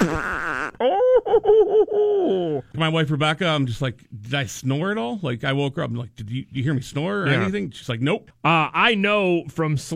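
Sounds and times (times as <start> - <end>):
fart: 0.0 - 0.8
speech: 0.2 - 9.9.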